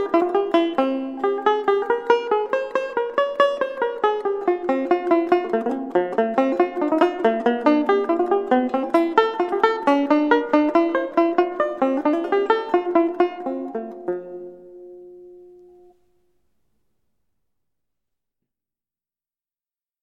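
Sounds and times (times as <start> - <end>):
cello piece on banjo: 0.0 - 16.0.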